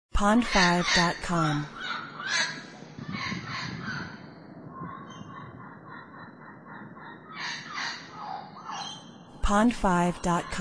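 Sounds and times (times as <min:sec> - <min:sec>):
speech: 0:00.2 - 0:02.5, 0:09.5 - 0:10.5
bird calls: 0:00.4 - 0:09.4.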